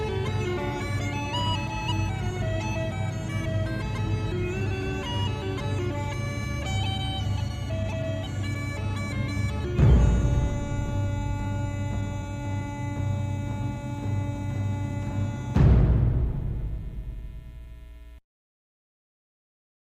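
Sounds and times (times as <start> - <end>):
Celtic bagpipes playing motivational music: 0.0 - 17.5.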